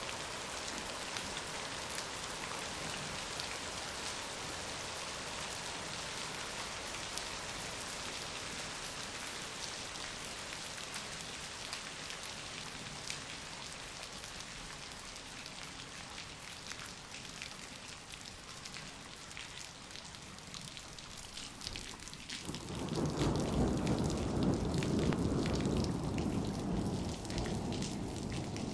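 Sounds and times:
rain: 0.0s - 28.7s
thunder: 22.4s - 28.7s.

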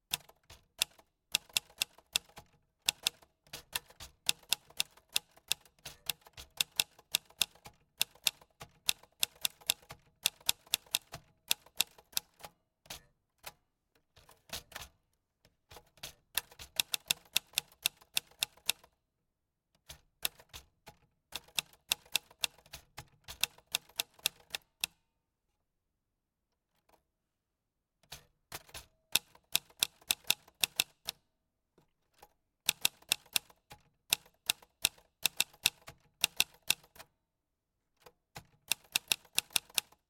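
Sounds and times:
Kochs Adler Nahmaschinenwerke typewriter typing: 0.1s - 12.5s, 15.7s - 18.9s, 19.9s - 24.9s, 28.0s - 31.2s, 32.1s - 37.1s, 38.0s - 40.0s.

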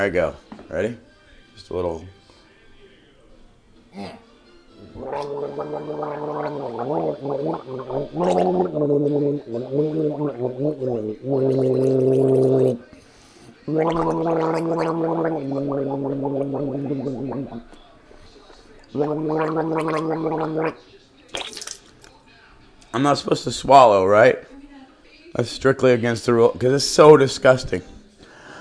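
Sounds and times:
speech: 0.0s - 2.2s, 4.0s - 12.9s, 13.6s - 17.8s, 18.9s - 21.0s, 22.9s - 24.5s, 25.4s - 28.0s
person gargling with salt water: 4.8s - 12.8s, 13.7s - 17.7s, 18.9s - 20.8s.

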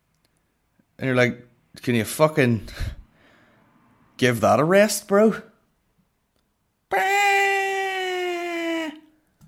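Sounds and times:
speech: 1.0s - 3.0s, 4.2s - 5.5s
person imitating a long cat meow: 6.9s - 9.2s.

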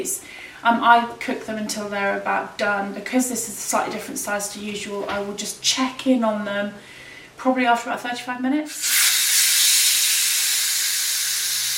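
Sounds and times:
speech: 0.0s - 9.0s
oven spray hissing: 8.7s - 11.7s.

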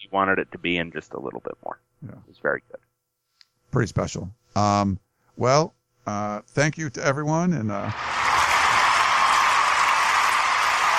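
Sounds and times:
speech: 0.0s - 2.9s, 3.7s - 8.3s
studio audience applause: 7.9s - 10.9s.

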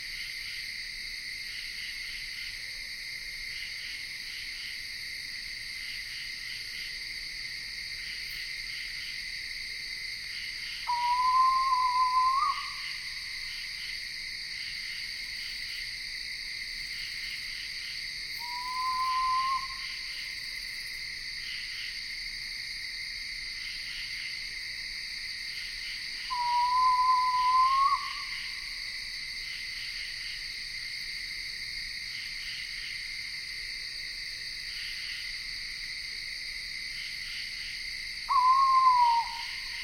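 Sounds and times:
insects in Ithaca New York: 0.0s - 39.8s
screech owl calling in Ithaca New York: 10.8s - 13.1s, 18.4s - 20.1s, 26.3s - 28.8s, 38.3s - 39.8s.

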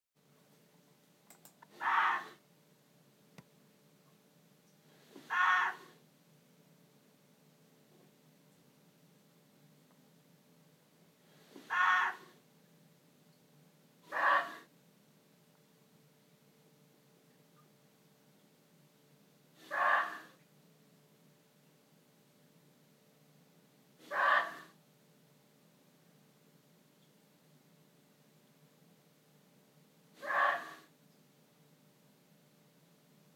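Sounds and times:
muntjac deer calling: 1.7s - 2.4s, 5.1s - 6.0s, 11.5s - 12.3s, 14.1s - 14.7s, 19.6s - 20.4s, 24.0s - 24.8s, 30.2s - 30.9s.

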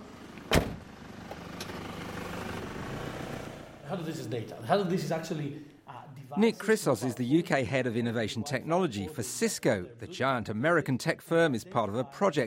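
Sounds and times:
door thud: 0.5s - 0.8s
speech: 3.9s - 5.7s, 6.3s - 12.4s.

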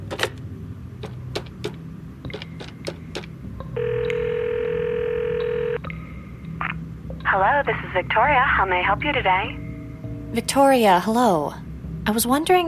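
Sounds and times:
telephone call ringing out: 3.7s - 5.8s
speech: 7.4s - 9.6s, 10.3s - 12.6s.

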